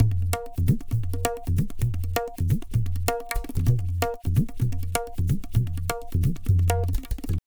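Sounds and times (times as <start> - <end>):
tabla: 0.0 - 7.4.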